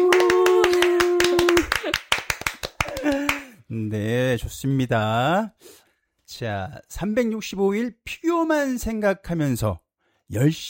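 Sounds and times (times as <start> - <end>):
people clapping together on count: 0.0 - 3.6
speech: 3.9 - 10.6.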